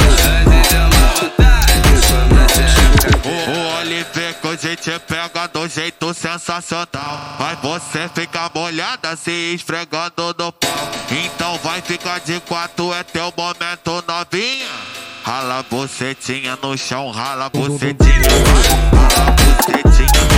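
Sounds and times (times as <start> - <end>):
electro funk music: 0.0 - 5.5, 10.6 - 13.6, 17.2 - 20.3.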